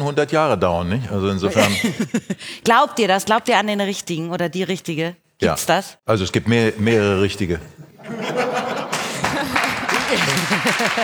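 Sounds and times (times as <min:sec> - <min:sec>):
speech: 0:00.0 - 0:08.5, 0:10.1 - 0:11.0
laughter: 0:01.5 - 0:02.4, 0:07.8 - 0:11.0
men clapping: 0:08.7 - 0:11.0.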